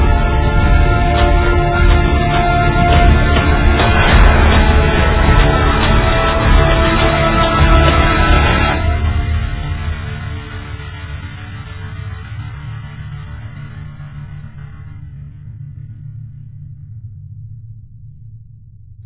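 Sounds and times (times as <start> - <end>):
dramatic menu music: 0.0 - 15.0.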